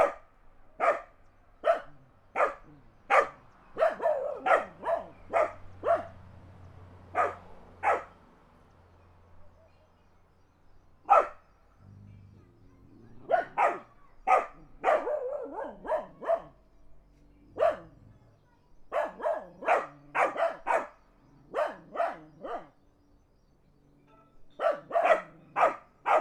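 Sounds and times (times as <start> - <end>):
dogs barking in the country: 0.0 - 0.2, 0.8 - 6.2, 7.1 - 8.2, 11.0 - 11.4, 13.1 - 16.7, 17.4 - 18.2, 18.9 - 22.8, 24.6 - 26.1
car passing: 0.0 - 23.0.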